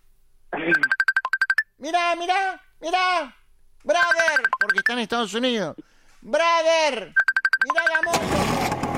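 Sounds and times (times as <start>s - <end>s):
phone ringing for an outgoing video call: 0.7s - 1.7s, 4.0s - 5.0s, 7.2s - 8.2s
speech: 1.8s - 8.8s.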